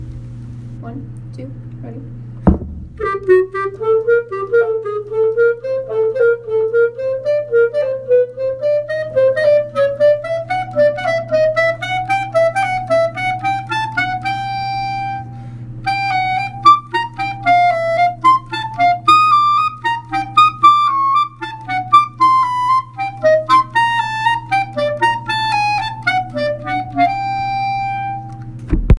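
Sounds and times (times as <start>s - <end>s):
flute: 3.0s - 28.5s.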